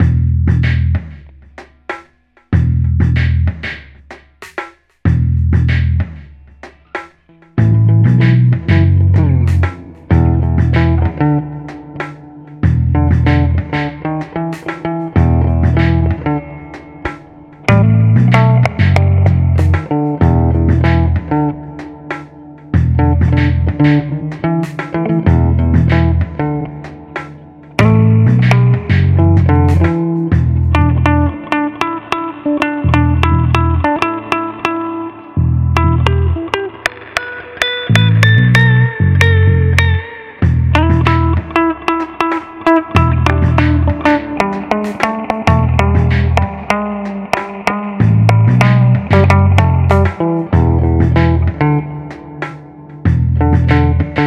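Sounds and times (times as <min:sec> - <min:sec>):
morning funk music: 0:00.0 - 0:54.2.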